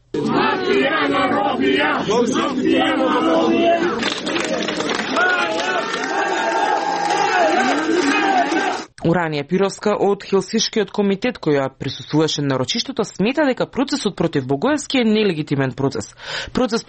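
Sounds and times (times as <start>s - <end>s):
ovation from several hundred demonstrators outside courthouse: 0.2s - 8.9s
speech: 0.7s - 6.5s, 8.7s - 16.8s.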